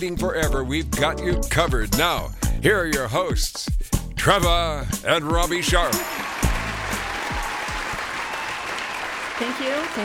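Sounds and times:
speech: 0.0s - 6.3s, 9.4s - 10.0s
audience applause: 5.9s - 10.0s.

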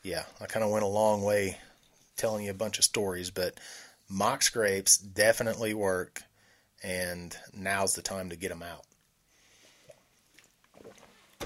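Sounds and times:
speech: 0.0s - 8.9s
person drinking water: 8.9s - 11.4s.

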